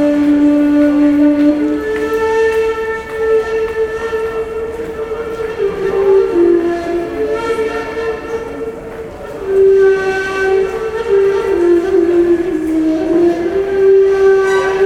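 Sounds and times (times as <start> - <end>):
metro ambience: 0.0 - 14.8
musician playing a ney flute in the metro: 0.0 - 14.8.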